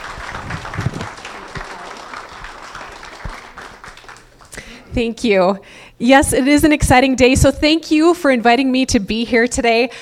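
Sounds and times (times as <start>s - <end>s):
church congregation applauding to welcome a guest pastor: 0.0s - 4.7s
speech: 5.0s - 10.0s.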